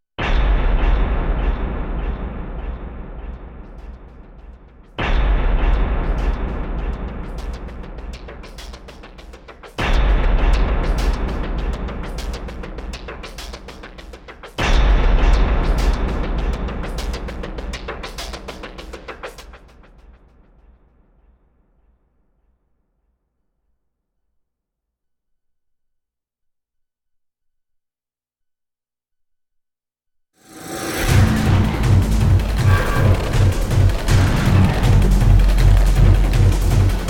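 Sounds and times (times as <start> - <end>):
percussion: 0.2 - 20.8, 30.4 - 37.0.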